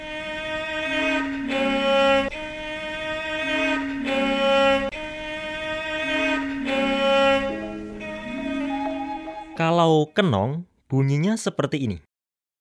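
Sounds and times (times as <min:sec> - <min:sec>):
Javanese rebab bowed string instrument melody: 0:00.0 - 0:09.6
speech: 0:09.9 - 0:12.1.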